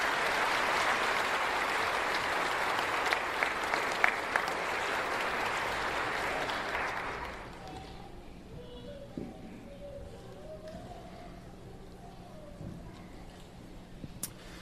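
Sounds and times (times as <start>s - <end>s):
audience applause: 0.0s - 7.6s.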